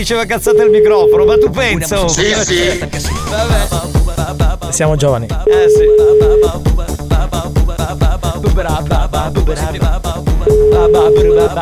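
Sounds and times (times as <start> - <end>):
speech: 0.0 - 7.0, 8.7 - 11.6
loud drum-driven music: 0.0 - 11.6
telephone ringback tone: 0.4 - 1.6, 5.5 - 6.6, 10.5 - 11.6.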